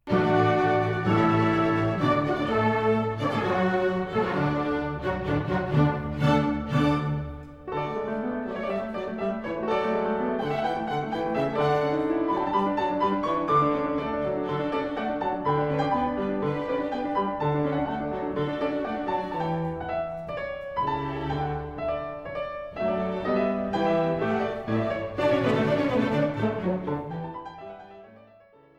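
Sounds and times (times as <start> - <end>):
piano: 0.0 - 28.7.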